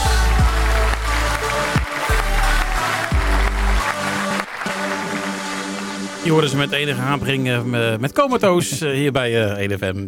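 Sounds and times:
studio applause: 0.0s - 7.0s
speech: 6.3s - 10.0s.

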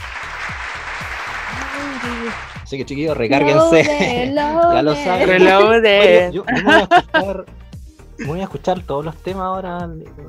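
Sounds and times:
applause: 0.0s - 2.7s
speech: 1.8s - 7.6s, 8.2s - 10.2s
laughter: 3.4s - 7.4s.

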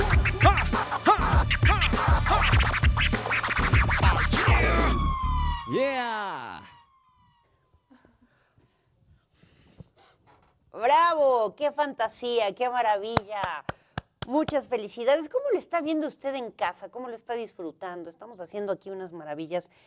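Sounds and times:
DJ scratching records on turntables: 0.0s - 5.0s
beat: 0.0s - 5.5s
speech: 10.8s - 19.8s.

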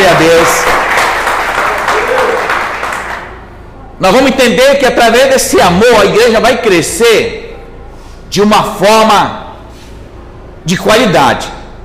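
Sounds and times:
audience applause: 0.0s - 3.5s
speech: 4.0s - 7.4s, 8.3s - 9.4s, 10.6s - 11.6s.

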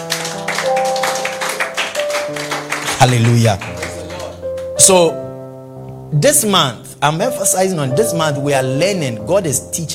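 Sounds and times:
audience clapping: 0.0s - 4.8s
speech: 3.0s - 3.8s, 4.8s - 5.2s, 6.1s - 9.9s.

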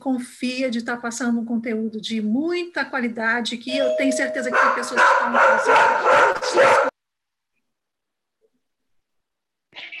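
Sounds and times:
speech: 0.0s - 6.9s
big dog barking: 4.5s - 6.9s.

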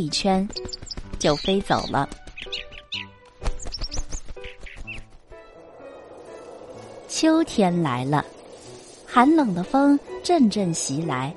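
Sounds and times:
speech: 0.0s - 2.2s, 7.2s - 8.4s, 9.2s - 11.3s
bluebird song with high quick chirps and tweets: 0.4s - 5.2s.

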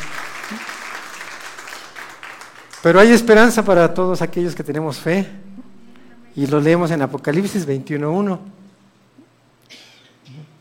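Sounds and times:
audience applause: 0.0s - 3.6s
speech: 0.5s - 0.8s, 2.8s - 5.4s, 6.4s - 8.6s.

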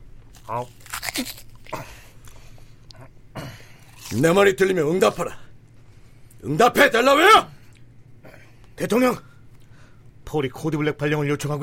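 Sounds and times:
person chewing a crunchy baguette: 0.2s - 4.4s
speech: 0.5s - 2.0s, 4.1s - 5.4s, 6.4s - 7.5s, 8.8s - 9.3s, 10.3s - 11.6s.

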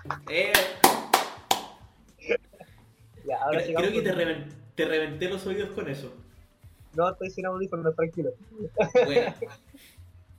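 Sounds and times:
speech: 0.0s - 0.7s, 3.4s - 6.2s, 6.9s - 10.0s
recorded applause: 0.4s - 1.8s
laughter: 8.6s - 9.6s.

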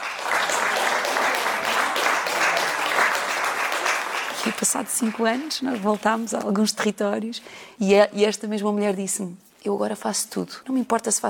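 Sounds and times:
audience applause: 0.0s - 6.2s
speech: 4.6s - 11.2s.

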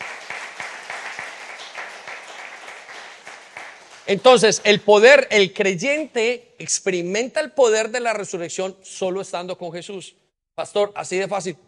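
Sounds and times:
audience applause: 0.0s - 4.7s
speech: 4.1s - 11.6s.

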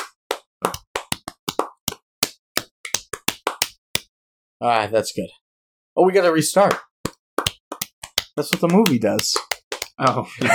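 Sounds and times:
hand clapping: 0.0s - 4.1s, 6.6s - 10.5s
speech: 4.6s - 5.4s, 6.0s - 6.9s, 8.4s - 10.5s.

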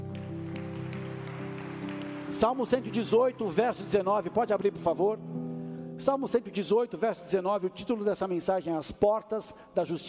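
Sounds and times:
audience applause: 0.0s - 4.1s
speech: 2.3s - 5.3s, 6.0s - 10.0s.

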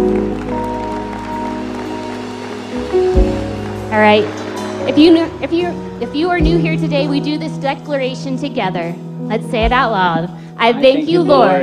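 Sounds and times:
audience hand clapping: 0.0s - 6.0s
speech: 4.0s - 11.6s.

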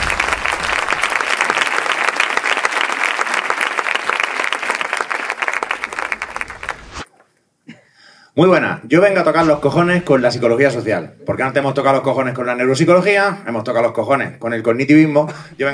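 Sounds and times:
audience applause: 0.0s - 6.9s
speech: 8.4s - 15.7s.

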